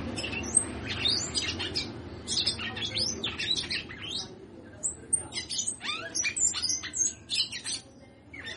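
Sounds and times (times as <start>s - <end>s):
female red-cowled cardinal singing: 0.1s - 8.5s.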